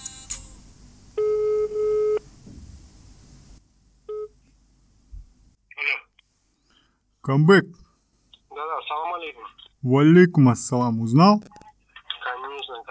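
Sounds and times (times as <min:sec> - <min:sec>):
low hum: 0:00.0 - 0:12.8
telephone beep: 0:01.2 - 0:02.2
speech: 0:07.2 - 0:07.8, 0:09.2 - 0:11.6.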